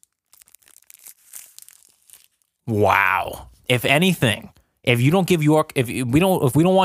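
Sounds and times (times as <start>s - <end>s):
candy wrapper being torn open: 0.0s - 2.6s
speech: 2.7s - 6.8s.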